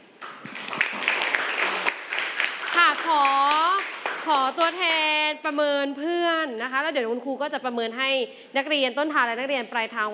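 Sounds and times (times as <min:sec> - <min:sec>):
classroom applause: 0:00.2 - 0:04.8
speech: 0:04.3 - 0:10.1.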